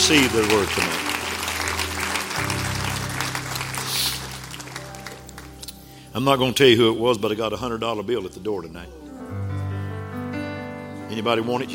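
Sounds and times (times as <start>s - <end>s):
audience clapping hands: 0.0s - 6.0s
speech: 0.1s - 1.1s, 6.1s - 9.0s, 11.2s - 11.7s.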